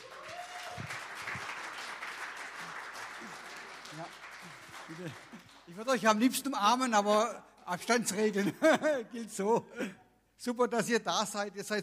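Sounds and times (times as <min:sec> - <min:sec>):
audience applauding: 0:00.0 - 0:06.2
speech: 0:04.9 - 0:11.8
laughter: 0:08.1 - 0:09.6.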